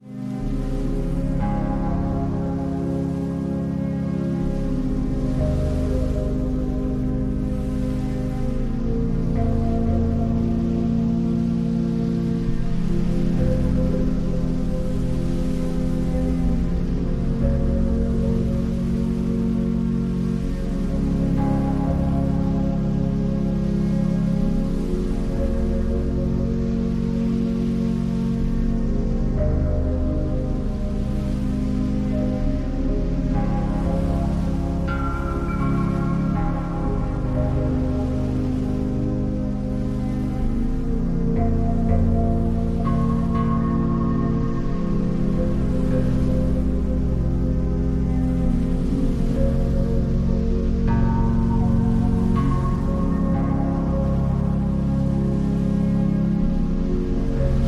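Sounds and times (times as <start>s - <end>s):
meditation music: 0.0s - 57.6s.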